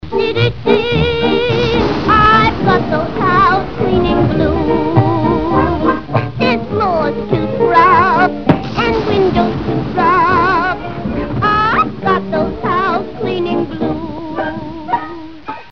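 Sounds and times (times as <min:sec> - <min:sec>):
blues song verse: 0:00.0 - 0:15.7.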